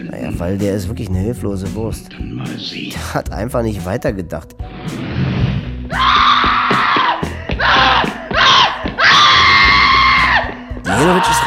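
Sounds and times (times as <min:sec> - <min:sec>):
speech: 0:00.1 - 0:05.1, 0:11.0 - 0:11.4
woman screaming: 0:05.9 - 0:11.4.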